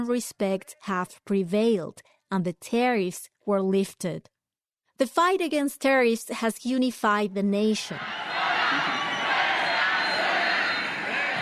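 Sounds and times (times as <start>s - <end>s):
speech: 0.0s - 4.3s, 5.0s - 9.0s
large crowd shouting and cheering in support: 7.9s - 11.4s.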